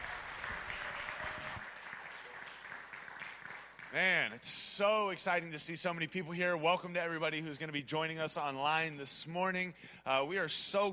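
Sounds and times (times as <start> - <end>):
church congregation applauding the worship team at a morning service: 0.0 - 4.4
speech: 3.9 - 10.9.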